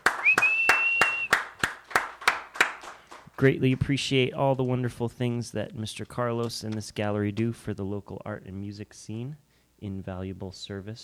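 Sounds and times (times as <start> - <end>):
audience applause in rhythmic claps: 0.0 - 3.9
sustained high whistle: 0.1 - 1.4
speech: 3.4 - 11.0.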